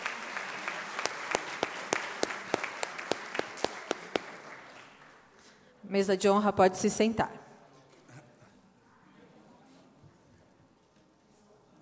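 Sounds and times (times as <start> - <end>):
audience applause: 0.0 - 5.3
speech: 5.9 - 7.4.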